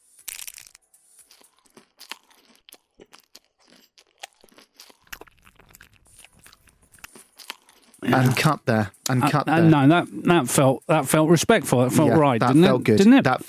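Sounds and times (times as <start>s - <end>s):
person biting and chewing food: 0.2s - 8.5s
speech: 8.0s - 13.4s.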